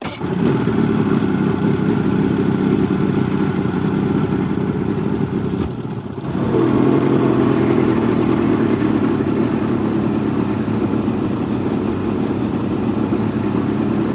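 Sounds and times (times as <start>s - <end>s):
150 hp Mercury boat outboard engine starting and driving away: 0.0s - 14.1s.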